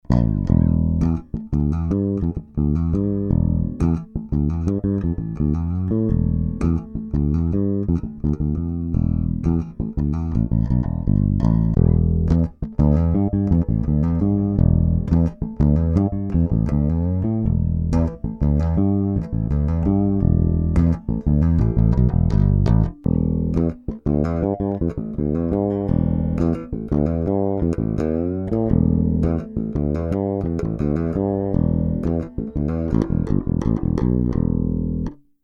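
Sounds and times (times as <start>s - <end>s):
round wound bass with flat EQ: 0.0s - 35.3s.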